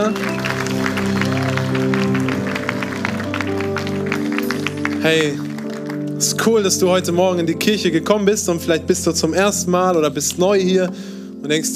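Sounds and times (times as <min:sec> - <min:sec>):
speech: 0:00.0 - 0:00.9, 0:05.0 - 0:05.5, 0:06.2 - 0:11.7
church audience applause: 0:00.0 - 0:06.5.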